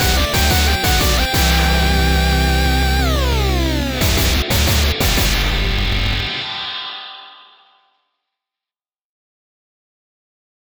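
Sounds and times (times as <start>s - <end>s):
guitar: 0.0s - 6.8s.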